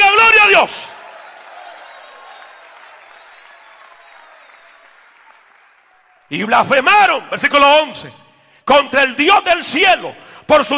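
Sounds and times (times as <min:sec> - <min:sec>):
audience applause: 0:00.3 - 0:06.3
speech: 0:00.6 - 0:00.9, 0:06.3 - 0:10.7.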